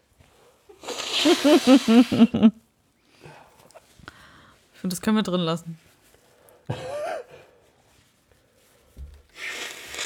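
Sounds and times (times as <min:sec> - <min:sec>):
nose blowing: 0:00.7 - 0:02.4, 0:09.4 - 0:10.0
speech: 0:01.2 - 0:02.6, 0:04.8 - 0:05.8.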